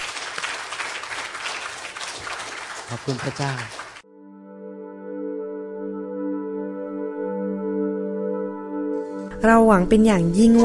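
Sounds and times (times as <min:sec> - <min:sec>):
audience clapping: 0:00.0 - 0:04.0
speech: 0:02.9 - 0:03.8, 0:09.4 - 0:10.6.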